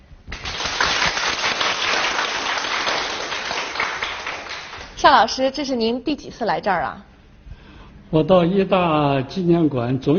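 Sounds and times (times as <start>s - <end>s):
audience applause: 0.3s - 5.0s
speech: 5.0s - 7.1s, 8.1s - 10.1s.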